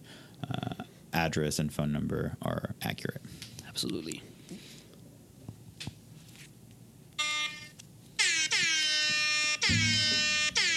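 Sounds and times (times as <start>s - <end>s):
speech: 1.2s - 4.6s
air horn blasts: 8.2s - 10.7s.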